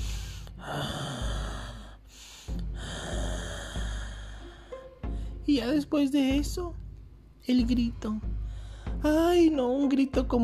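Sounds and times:
person imitating heavy raspy breathing: 0.0 - 4.8
speech: 5.5 - 6.8, 7.4 - 8.3, 9.0 - 10.4.

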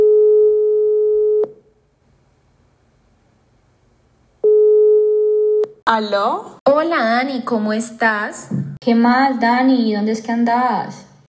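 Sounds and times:
telephone ringback tone while a call is being connected: 0.0 - 1.5, 4.4 - 5.6
speech: 5.9 - 11.1.

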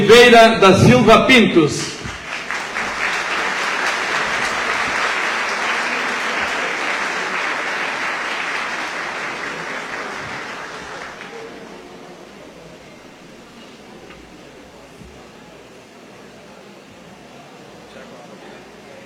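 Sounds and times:
speech: 0.1 - 2.0
audience applause: 2.0 - 11.9.

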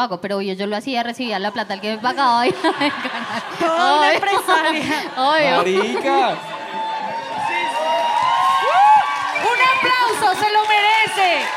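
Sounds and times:
speech: 0.0 - 6.6, 10.2 - 11.5
laughter: 1.5 - 7.7
audience applause: 2.5 - 11.5.

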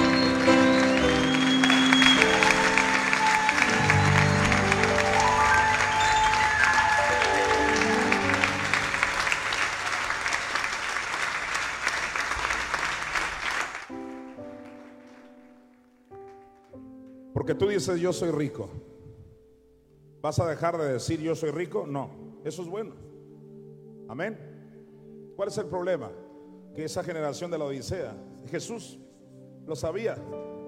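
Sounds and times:
large audience applause: 0.0 - 15.4
speech: 17.6 - 18.9, 20.2 - 23.1, 24.1 - 24.5, 25.4 - 26.2, 26.8 - 29.0, 29.6 - 30.5.

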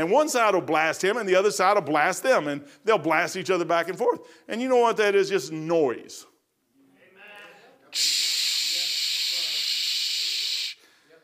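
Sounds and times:
speech: 0.0 - 6.3, 7.9 - 8.4
person making a shh hiss imitating white noise: 7.9 - 11.2.

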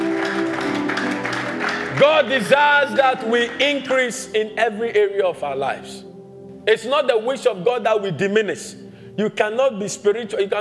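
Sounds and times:
people clapping: 0.0 - 4.3
speech: 2.0 - 10.5.

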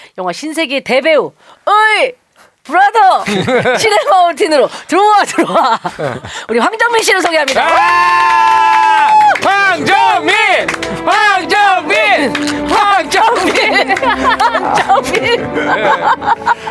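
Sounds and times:
speech: 0.2 - 16.7
laughter: 3.2 - 4.2, 5.3 - 6.3, 12.4 - 16.7
audience cheering: 7.4 - 15.0.

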